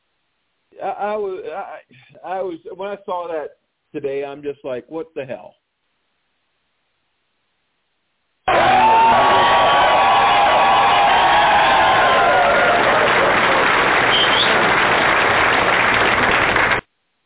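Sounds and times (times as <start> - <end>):
speech: 0.8 - 5.6
crowd cheering and whooping: 8.5 - 14.9
crowd applauding: 8.5 - 16.9.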